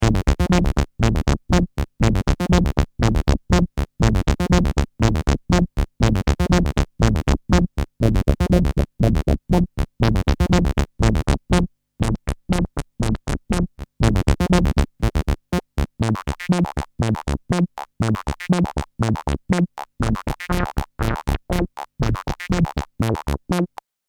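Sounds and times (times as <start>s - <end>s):
saw bass synth: 0.0s - 23.8s.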